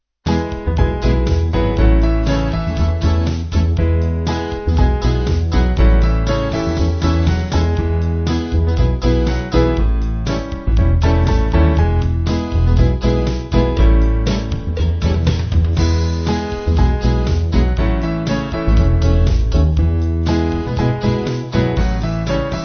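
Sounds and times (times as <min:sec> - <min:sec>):
band playing: 0:00.3 - 0:22.6.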